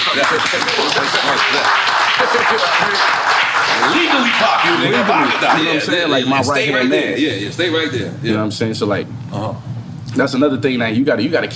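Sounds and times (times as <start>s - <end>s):
audience at a hip-hop show clapping and cheering: 0.0s - 5.9s
speech: 0.2s - 11.5s
laughter: 10.5s - 11.5s.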